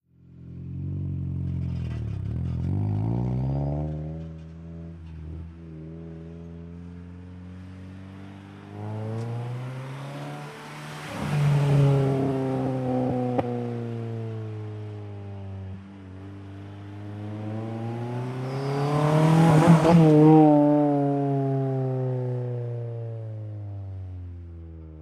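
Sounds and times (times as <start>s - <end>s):
Acura Integra decelerating and accelerating on circle approaches: 0.4s - 24.9s.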